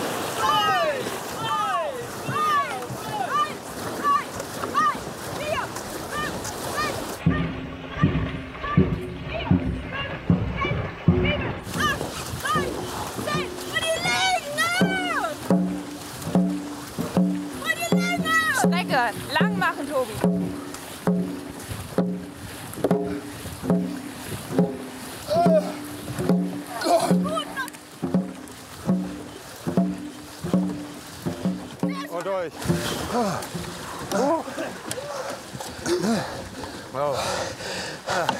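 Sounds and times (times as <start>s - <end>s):
paddles dipping into water: 0.0s - 38.3s
people talking and calling out: 0.3s - 38.3s.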